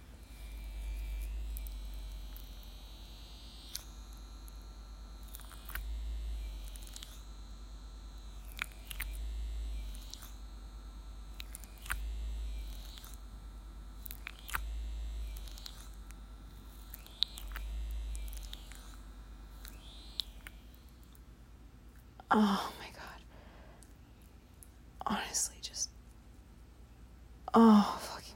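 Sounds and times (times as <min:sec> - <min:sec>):
vibrator buzzing: 0:00.0 - 0:21.4
speech: 0:22.3 - 0:22.7, 0:27.6 - 0:28.0.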